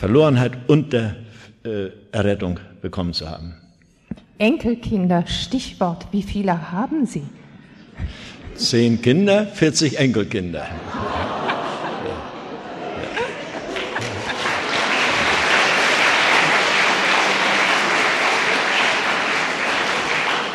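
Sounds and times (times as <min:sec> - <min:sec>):
speech: 0:00.0 - 0:03.6, 0:04.4 - 0:07.4, 0:08.0 - 0:11.5
laughter: 0:07.8 - 0:20.5
audience applause: 0:10.9 - 0:20.5.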